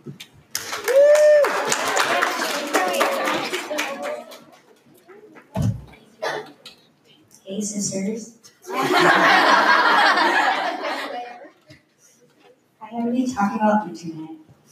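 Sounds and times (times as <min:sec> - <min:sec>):
audience applauding: 0:00.5 - 0:04.8
cheers: 0:00.6 - 0:04.4
speech: 0:07.6 - 0:09.6, 0:13.4 - 0:14.4
laughter: 0:08.7 - 0:11.6.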